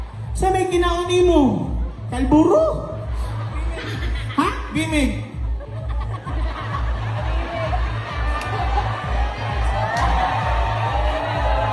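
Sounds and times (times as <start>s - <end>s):
audience applause and cheering: 0.0s - 0.4s, 6.3s - 11.7s
speech: 0.4s - 4.0s, 4.7s - 5.3s
laughter: 2.8s - 9.8s.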